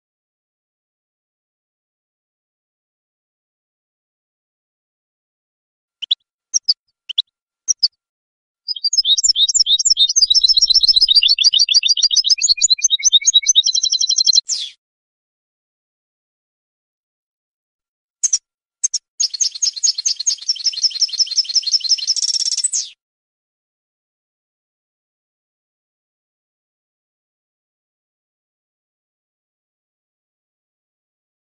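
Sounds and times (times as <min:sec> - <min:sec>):
European goldfinch singing: 0:08.7 - 0:14.7, 0:18.2 - 0:22.9.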